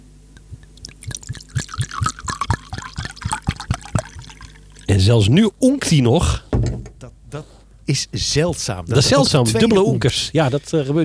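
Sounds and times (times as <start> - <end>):
drink poured into a glass: 0.6 - 5.0
speech: 5.0 - 6.4, 7.3 - 11.0.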